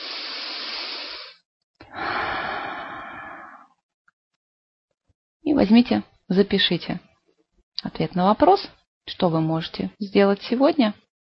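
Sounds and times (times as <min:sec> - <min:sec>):
deep breath in and long exhale during a grounding meditation: 0:00.0 - 0:03.8
speech: 0:05.6 - 0:07.1, 0:07.8 - 0:11.0.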